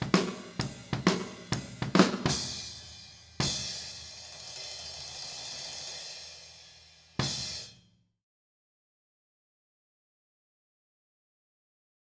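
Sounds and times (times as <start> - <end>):
blues drum track: 0.0 - 7.8.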